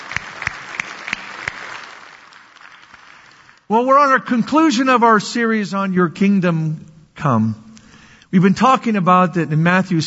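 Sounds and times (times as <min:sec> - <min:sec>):
audience applause: 0:00.0 - 0:03.7
speech: 0:03.7 - 0:07.6, 0:08.3 - 0:10.0.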